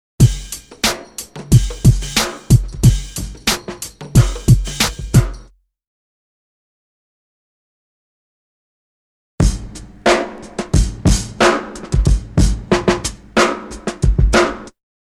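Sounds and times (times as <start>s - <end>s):
drum loop: 0.2s - 5.5s, 9.4s - 14.7s.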